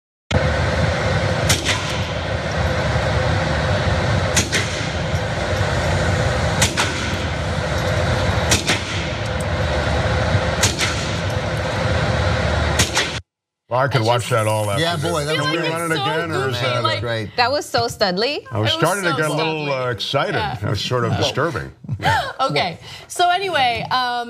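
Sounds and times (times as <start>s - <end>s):
steady loud noise: 0.4s - 24.2s
handgun shots: 8.5s - 9.0s
speech: 13.8s - 24.2s.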